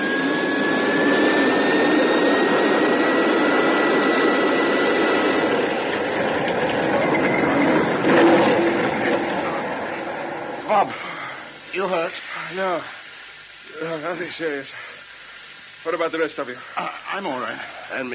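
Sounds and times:
spacecraft roaring as it comes down for a crash landing on rocky ground: 0.0s - 11.5s
speech: 12.5s - 13.0s, 13.8s - 14.9s, 15.8s - 18.1s.

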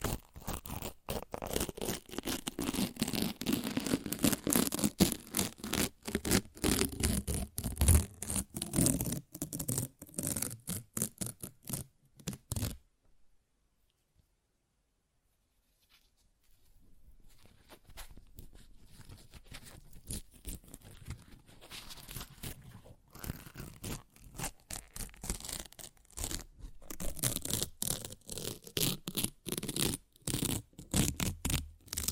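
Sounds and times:
paper ripped and torn: 0.0s - 12.8s, 19.6s - 32.1s.

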